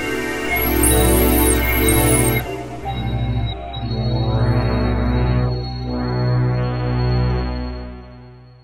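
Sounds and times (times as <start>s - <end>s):
E-mu Morpheus factory preset atmospheric synthesizer arpeggio: 0.0s - 6.8s.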